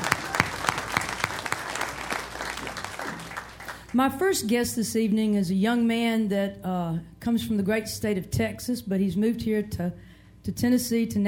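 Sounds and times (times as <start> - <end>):
audience applause: 0.0 - 3.9
speech: 3.9 - 11.2.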